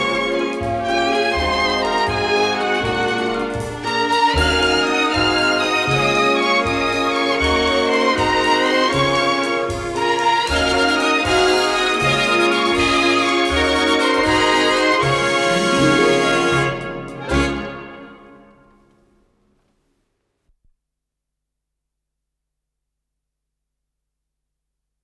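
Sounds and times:
symphony orchestra playing a variety piece: 0.0 - 18.7.

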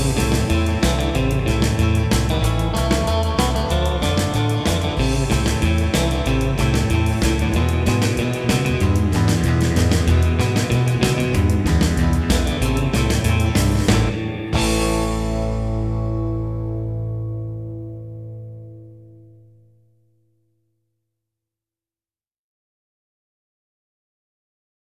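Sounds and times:
gipsy rockabilly beat: 0.0 - 18.9.

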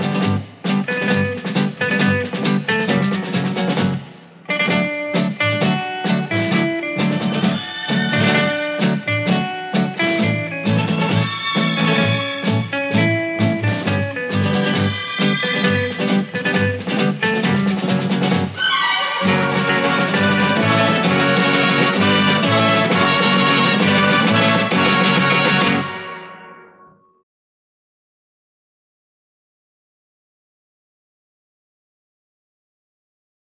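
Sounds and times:
guitar playing tango: 0.0 - 26.8.

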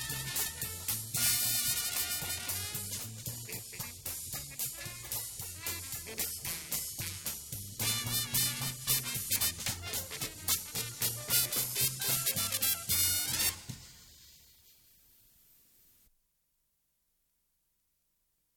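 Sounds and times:
jazz music in mono: 0.0 - 14.8.

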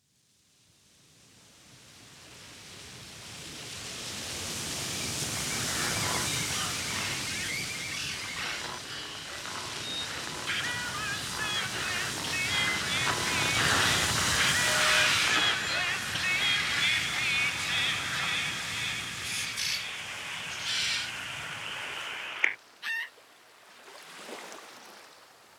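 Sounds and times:
radio tuning in transition: 5.2 - 22.6.

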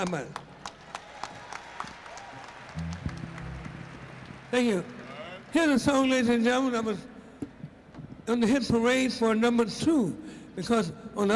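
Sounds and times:
speech: 0.0 - 0.4, 4.5 - 7.1, 8.3 - 11.3
audience applause: 0.0 - 6.4.

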